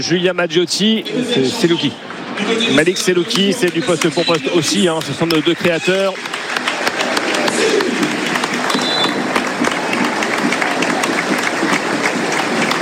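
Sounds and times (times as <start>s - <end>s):
speech: 0.0s - 6.5s
audience applauding players: 2.7s - 12.8s.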